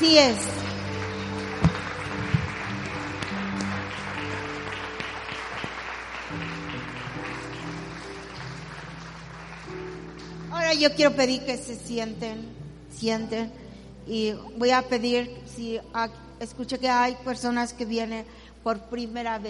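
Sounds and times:
speech: 0.0 - 0.6, 10.7 - 19.4
audience applauding: 0.5 - 10.6.

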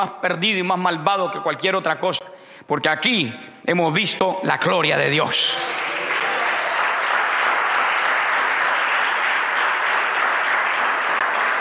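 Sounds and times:
speech: 0.0 - 5.8
large crowd applauding: 5.4 - 11.6.

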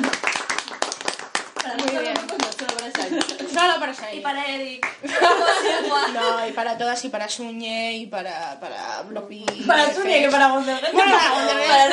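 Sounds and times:
applause: 0.0 - 4.1, 4.8 - 5.0
laughter: 1.9 - 3.8, 5.0 - 6.6, 9.6 - 11.9
speech: 3.7 - 11.9.

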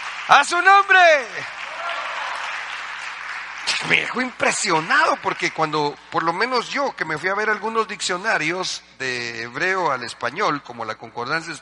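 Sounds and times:
audience applause: 0.0 - 5.8
speech: 0.3 - 1.6, 3.8 - 11.6.

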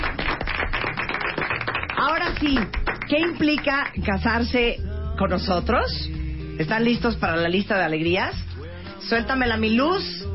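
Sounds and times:
applause for the couple: 0.0 - 4.1
speech: 2.2 - 8.4, 9.0 - 10.2.

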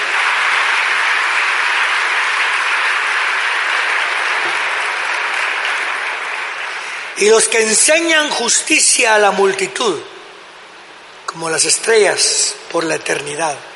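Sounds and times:
audience applause: 0.0 - 7.2
speech: 7.2 - 10.2, 11.3 - 13.7.

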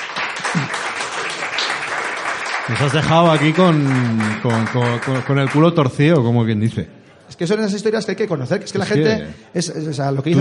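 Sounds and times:
applause: 0.0 - 6.1
speech: 2.7 - 10.3.

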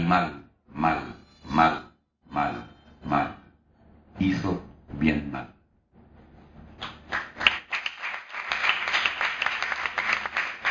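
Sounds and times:
speech: 0.1 - 3.2, 4.2 - 5.5
audience applause: 7.1 - 10.6.

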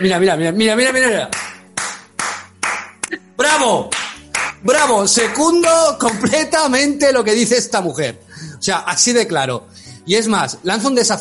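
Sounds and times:
speech: 0.0 - 1.4, 3.6 - 4.0, 4.6 - 11.1
hand clapping: 0.9 - 3.2, 3.8 - 6.4.

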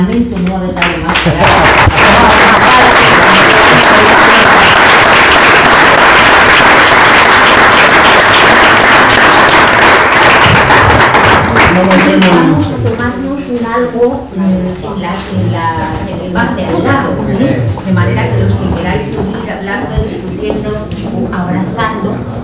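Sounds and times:
speech: 0.0 - 3.5, 11.8 - 12.8, 14.0 - 22.2
audience applause: 1.1 - 12.7.

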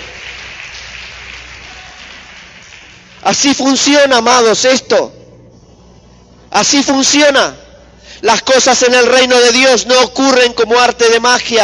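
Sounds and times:
audience applause: 0.0 - 3.3
speech: 3.2 - 5.2, 6.6 - 7.6, 8.2 - 11.6.

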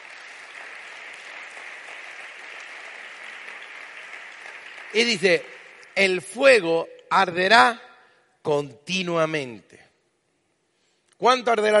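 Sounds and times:
crowd clapping: 0.0 - 6.4
speech: 4.9 - 7.8, 8.4 - 9.9, 11.2 - 11.7.

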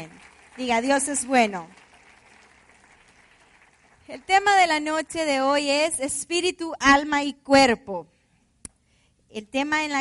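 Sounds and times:
speech: 0.0 - 1.8, 4.1 - 8.1, 9.3 - 9.9
audience applauding: 0.0 - 4.8.

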